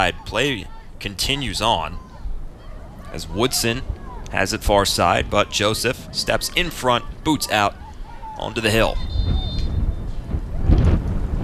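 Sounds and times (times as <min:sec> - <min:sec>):
speech: 0:00.0 - 0:02.0, 0:03.1 - 0:07.8, 0:08.4 - 0:09.1
gusty wind buffeting the microphone at USAC Field: 0:00.0 - 0:11.4.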